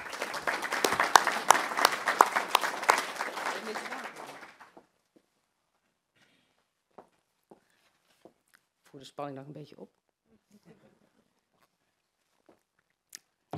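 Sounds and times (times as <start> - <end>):
applause: 0.0 - 4.9
speech: 9.0 - 10.0.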